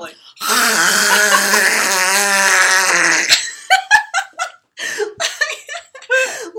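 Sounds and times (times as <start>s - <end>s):
person imitating snoring: 0.4s - 3.4s
person laughing: 0.5s - 6.4s.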